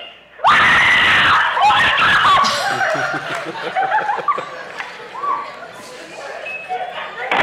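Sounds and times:
girl's blood-curdling scream at a snake: 0:00.4 - 0:02.9
laughter: 0:02.2 - 0:07.3.

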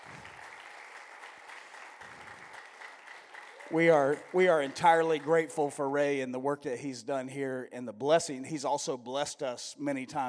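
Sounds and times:
audience hand clapping: 0:00.0 - 0:05.9
speech: 0:03.7 - 0:10.2.

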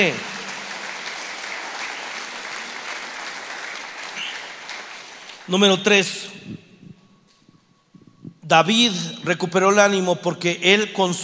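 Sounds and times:
speech: 0:00.0 - 0:00.3, 0:05.5 - 0:06.6, 0:08.5 - 0:11.2
audience applause: 0:00.0 - 0:05.8.

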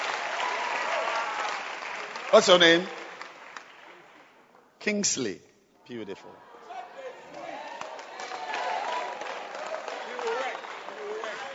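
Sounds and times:
audience clapping hands: 0:00.0 - 0:04.4, 0:07.2 - 0:11.5
speech: 0:02.3 - 0:03.0, 0:04.8 - 0:06.5.

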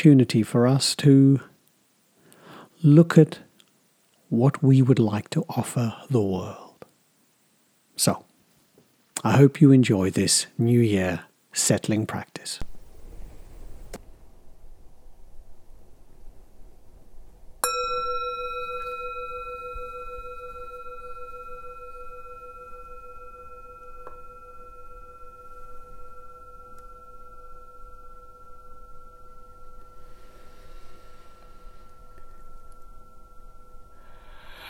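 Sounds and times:
speech: 0:00.0 - 0:01.5, 0:02.8 - 0:03.5, 0:04.3 - 0:06.6, 0:08.0 - 0:08.3, 0:09.2 - 0:12.7
meditation bell ringing: 0:17.6 - 0:34.4.

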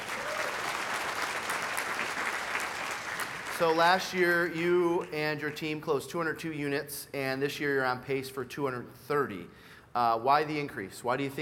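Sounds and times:
audience clapping: 0:00.0 - 0:05.7
speech: 0:03.6 - 0:11.4.

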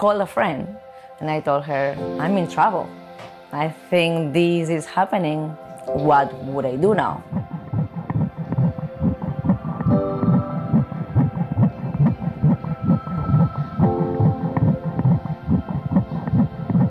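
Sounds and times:
speech: 0:00.0 - 0:07.6
baby's heartbeat on ultrasound monitor: 0:06.6 - 0:16.8.

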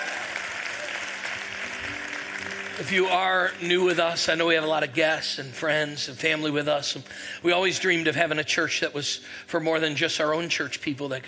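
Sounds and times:
church congregation applauding at an Easter service: 0:00.0 - 0:04.9
speech: 0:02.8 - 0:11.2.

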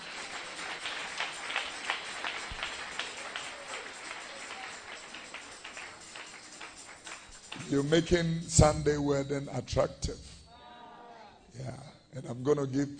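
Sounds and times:
audience clapping: 0:00.0 - 0:08.2
speech: 0:07.7 - 0:10.3, 0:11.6 - 0:12.9.

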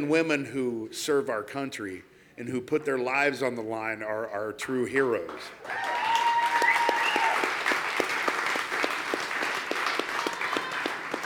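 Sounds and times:
speech: 0:00.0 - 0:06.0
crowd applause: 0:05.6 - 0:11.2
rhythmic clapping: 0:06.6 - 0:11.2.

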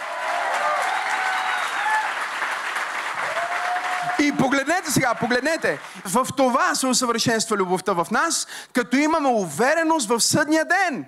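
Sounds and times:
audience applause: 0:00.0 - 0:06.4
speech: 0:04.2 - 0:11.0.

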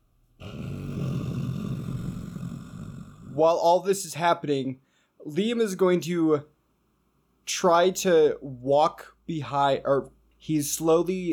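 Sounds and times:
voice imitating a low rumbling belly growl: 0:00.4 - 0:03.5
speech: 0:03.4 - 0:06.5, 0:07.5 - 0:11.3.

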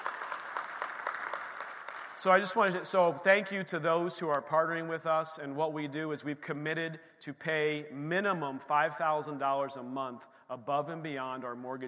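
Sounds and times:
audience clapping: 0:00.0 - 0:03.0
speech: 0:02.2 - 0:11.8.

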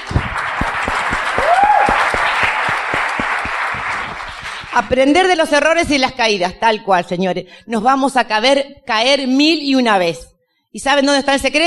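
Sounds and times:
audience applause: 0:00.0 - 0:04.8
speech: 0:04.8 - 0:11.6.

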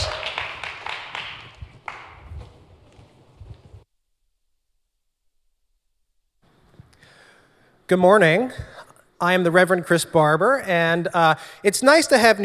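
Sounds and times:
audience applause: 0:00.0 - 0:03.0
speech: 0:07.9 - 0:12.4.

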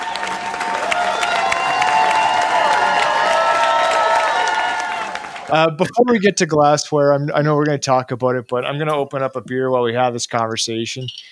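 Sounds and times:
added crowd noise: 0:00.0 - 0:06.6
speech: 0:05.5 - 0:11.2.

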